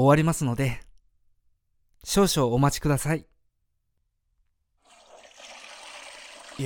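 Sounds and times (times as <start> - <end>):
speech: 0.0 - 0.8, 2.0 - 3.3
toilet flushing after being repaired: 4.9 - 6.6.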